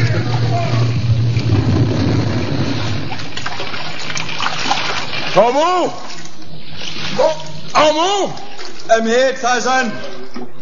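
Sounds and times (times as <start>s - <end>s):
low rumble: 0.0s - 4.4s
seawater splashing as people plunge into the sea: 0.0s - 10.4s
speech: 5.4s - 6.2s, 7.2s - 10.4s.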